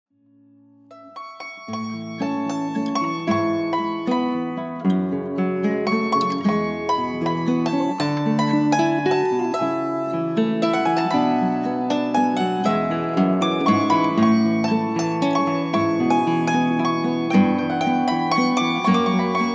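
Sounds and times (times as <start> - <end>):
winter waltz music: 0.9 - 19.5.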